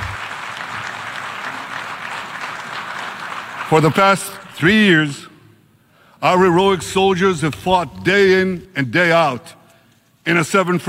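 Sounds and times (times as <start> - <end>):
applause: 0.0 - 4.6
speech: 3.7 - 5.3, 6.2 - 9.6, 10.3 - 10.8.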